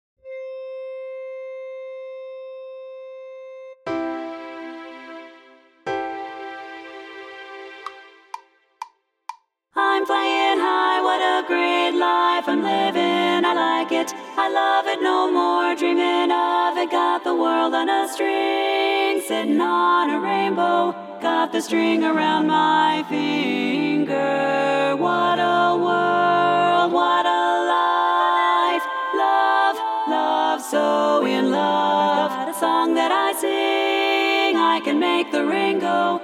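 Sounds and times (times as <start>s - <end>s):
baritone chorus singing: 9.8s - 36.2s.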